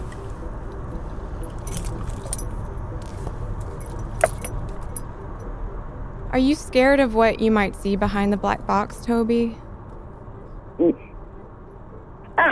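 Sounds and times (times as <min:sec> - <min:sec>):
person getting into a car: 0:00.0 - 0:05.4
speech: 0:06.4 - 0:09.6, 0:10.8 - 0:11.0.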